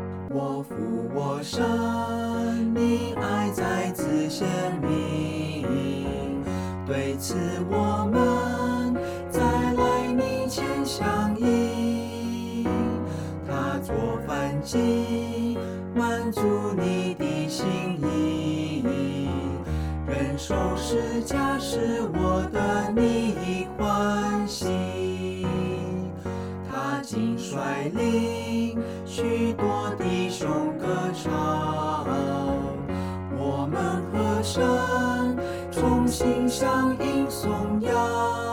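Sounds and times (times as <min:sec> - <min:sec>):
vocals: 0:00.2 - 0:38.5.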